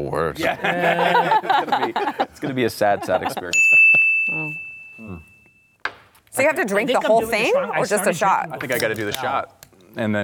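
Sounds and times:
speech: 0.0 - 3.8, 6.4 - 10.2
laughter: 0.4 - 3.6
high-pitched bell ding: 3.6 - 5.8.

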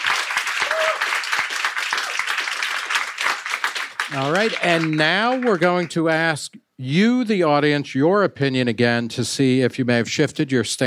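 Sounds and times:
audience applause: 0.0 - 6.0
speech: 4.1 - 10.8.

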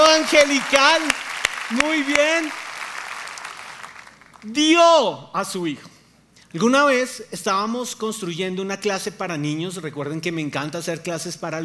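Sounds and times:
audience applause: 0.0 - 4.4
speech: 0.2 - 2.6, 4.4 - 5.9, 6.5 - 11.6.

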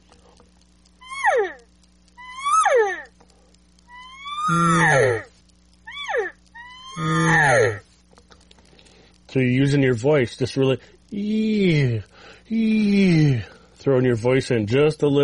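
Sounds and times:
faint steady hum: 0.0 - 15.2
cow call made with a reed: 3.9 - 5.3, 5.9 - 7.8
speech: 4.5 - 5.2, 9.4 - 15.2.

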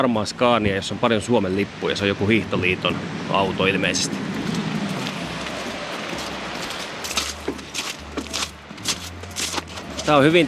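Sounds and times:
speech: 0.0 - 4.4, 10.1 - 10.4
shoes squelching through wet slush: 4.4 - 10.4.

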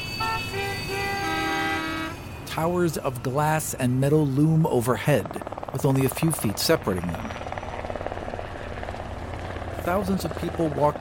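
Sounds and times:
busy city street traffic rumbling: 0.0 - 10.9
car horns tooting: 0.2 - 2.3
speech: 2.6 - 7.4, 9.8 - 10.9.

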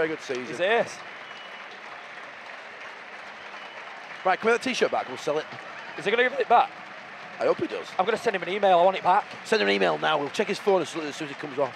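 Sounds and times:
speech: 0.0 - 1.2, 4.2 - 6.8, 7.4 - 11.7
crowd applauding a substituted player: 0.0 - 11.7.

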